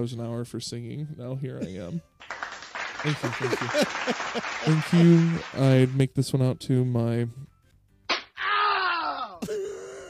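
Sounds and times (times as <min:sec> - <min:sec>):
speech: 0:00.0 - 0:02.4, 0:03.0 - 0:07.5
laughter: 0:02.8 - 0:06.0
slap sound effect: 0:08.1 - 0:08.4.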